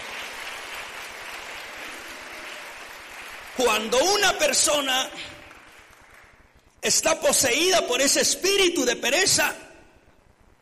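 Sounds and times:
audience applause: 0.0 - 6.5
speech: 3.6 - 5.4, 6.8 - 9.7.

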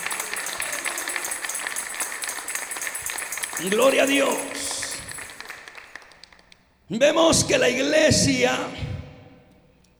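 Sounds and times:
audience applause: 0.0 - 6.4
speech: 3.6 - 4.7, 6.9 - 8.8.

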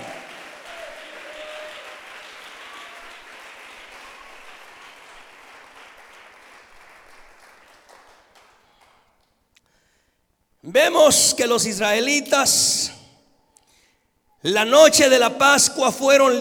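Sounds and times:
crowd applauding: 0.0 - 9.4
speech: 10.7 - 13.0, 14.4 - 16.3.

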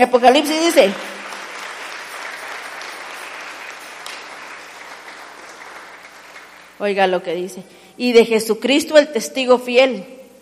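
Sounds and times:
speech: 0.0 - 1.1, 6.8 - 10.2
church congregation clapping for the Lord: 0.0 - 6.8.

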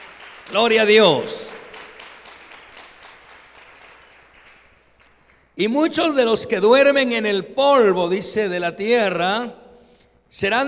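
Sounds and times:
audience applause: 0.0 - 5.4
speech: 0.5 - 1.4, 5.6 - 9.6, 10.3 - 10.6.

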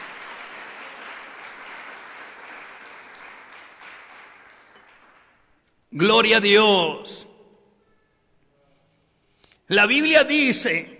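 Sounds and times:
crowd applause: 0.0 - 5.5
speech: 5.9 - 7.2, 9.7 - 10.9.

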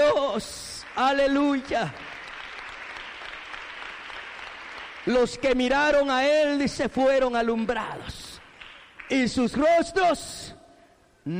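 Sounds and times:
speech: 0.4 - 2.0, 5.0 - 8.2, 9.1 - 10.6
audience applause: 0.8 - 5.4.

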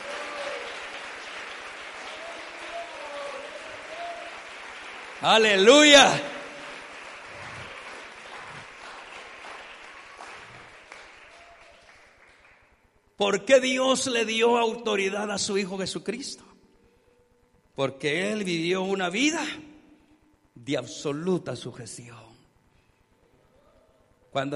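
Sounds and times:
audience applause: 0.0 - 12.8
speech: 5.2 - 6.3, 13.2 - 16.5, 17.8 - 19.7, 20.6 - 22.3, 24.4 - 24.5.

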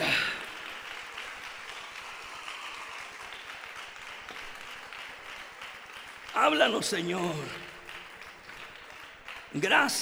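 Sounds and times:
audience applause: 0.0 - 9.9
speech: 6.4 - 7.6, 9.5 - 9.9.

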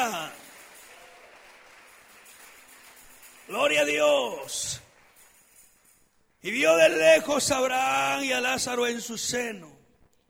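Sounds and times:
audience applauding: 0.0 - 6.5
speech: 3.5 - 4.8, 6.4 - 9.8.

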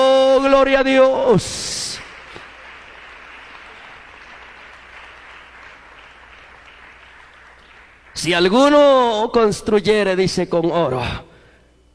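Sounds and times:
speech: 0.5 - 1.8, 8.2 - 11.3
audience applauding: 1.0 - 9.0.

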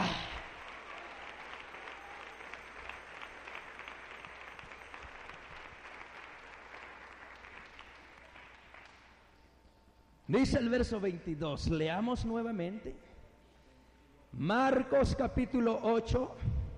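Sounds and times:
audience applause: 0.0 - 9.2
speech: 10.3 - 13.1, 14.3 - 16.5.

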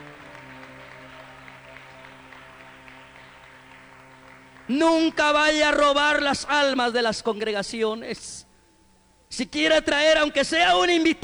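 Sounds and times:
audience applause: 0.0 - 5.8
speech: 4.7 - 8.5, 9.3 - 11.2.

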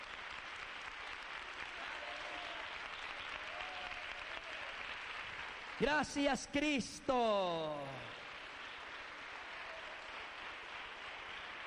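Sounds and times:
audience applause: 0.0 - 11.6
speech: 5.8 - 8.2.

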